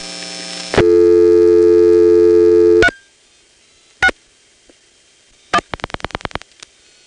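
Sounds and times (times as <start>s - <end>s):
loud steady buzzing tone: 0.0s - 3.1s.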